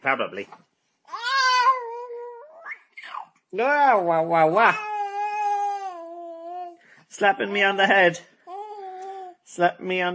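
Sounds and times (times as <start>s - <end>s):
speech: 0.0s - 0.7s, 3.5s - 4.9s, 7.2s - 8.3s, 9.5s - 10.1s
baby imitating frog sounds: 1.1s - 3.4s, 4.7s - 6.8s, 8.5s - 9.4s.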